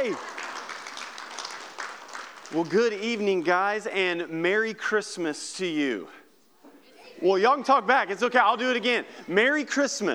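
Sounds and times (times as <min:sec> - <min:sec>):
speech: 0:00.0 - 0:00.4, 0:02.5 - 0:06.2, 0:07.2 - 0:10.1
audience clapping: 0:00.0 - 0:04.3.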